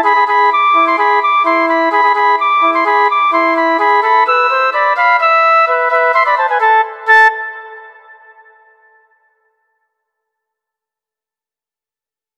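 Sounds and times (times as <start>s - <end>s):
flute duet: 0.0s - 9.3s.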